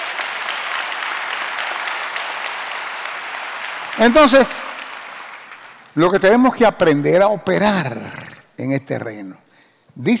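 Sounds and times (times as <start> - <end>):
audience applause: 0.0 - 6.9
speech: 4.0 - 4.7, 6.0 - 9.4, 10.0 - 10.1.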